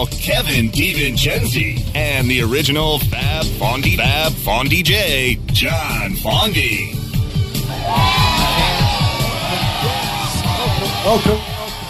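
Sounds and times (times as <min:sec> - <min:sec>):
speech: 0:00.0 - 0:07.0, 0:07.8 - 0:08.5, 0:11.0 - 0:11.5
cheering audience applause: 0:07.8 - 0:11.8.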